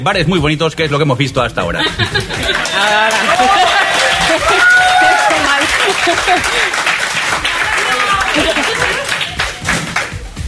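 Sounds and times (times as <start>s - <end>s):
speech: 0.0s - 4.8s, 5.9s - 7.5s, 8.3s - 8.9s
laughter: 1.7s - 9.7s
audience applause: 2.2s - 10.4s.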